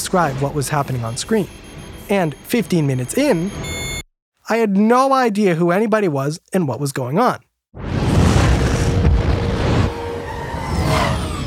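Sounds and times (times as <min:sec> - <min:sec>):
speech: 0:00.1 - 0:03.8, 0:04.5 - 0:07.9
movie explosions: 0:07.8 - 0:11.4.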